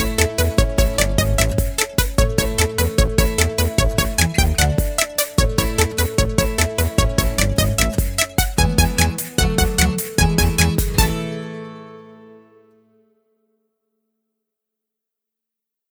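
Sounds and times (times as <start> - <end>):
robot dance instrumental: 0.0 - 11.4.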